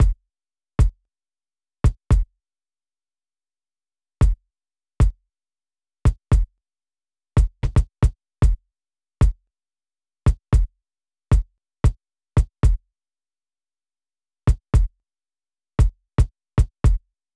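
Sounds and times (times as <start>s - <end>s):
processed kick drum with sample: 0.0s - 0.2s, 1.9s - 2.3s, 6.1s - 6.5s, 7.4s - 8.6s, 10.3s - 10.7s, 11.3s - 12.8s, 14.5s - 14.9s, 15.8s - 17.0s.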